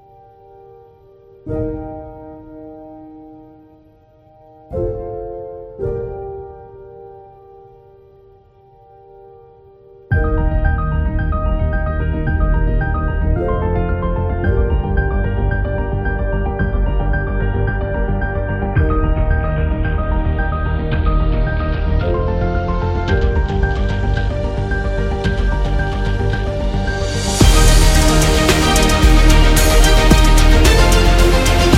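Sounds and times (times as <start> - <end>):
epic motivational beat: 10.1 - 31.7.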